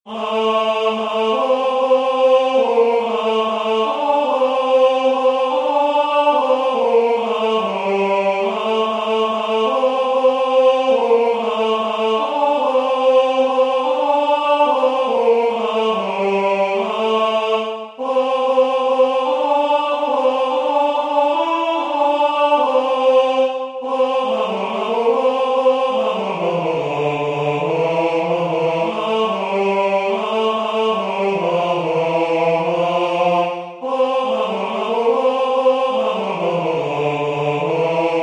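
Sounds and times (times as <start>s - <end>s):
tenor singing: 0.1s - 38.2s.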